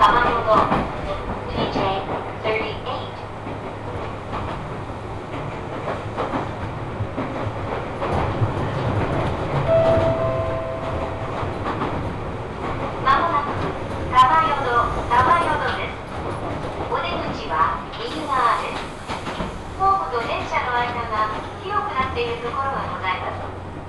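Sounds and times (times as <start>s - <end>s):
people talking: 0.0s - 3.2s, 13.1s - 16.0s, 16.9s - 18.8s, 19.8s - 23.4s
Tobu Tojo Line local train running between Yorii and Ogawamachi: 0.0s - 23.8s
brief tone: 9.7s - 11.3s.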